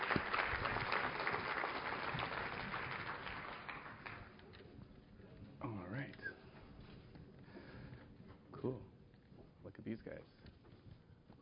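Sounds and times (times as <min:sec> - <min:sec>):
audience applause: 0:00.0 - 0:04.5
speech: 0:08.7 - 0:08.9, 0:09.7 - 0:10.4.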